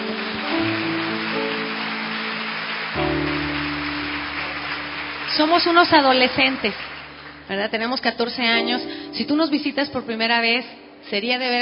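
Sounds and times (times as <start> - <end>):
audience applause: 0.0 - 7.6
speech: 5.4 - 6.9, 7.5 - 11.6.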